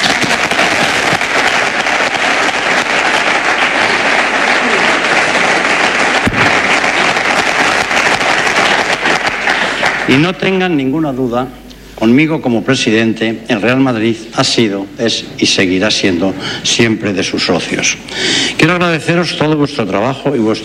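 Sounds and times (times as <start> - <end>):
applause from the stadium crowd: 0.0 - 10.6
speech: 10.1 - 20.6.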